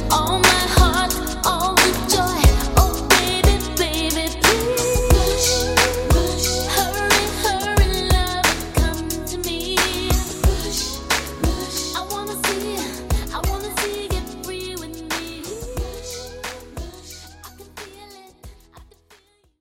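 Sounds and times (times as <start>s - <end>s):
90s drum beat: 0.0s - 3.8s, 4.4s - 14.5s.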